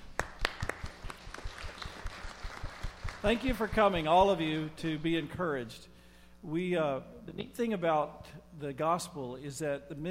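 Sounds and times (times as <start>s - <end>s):
audience applause: 0.0s - 3.8s
speech: 3.2s - 10.0s.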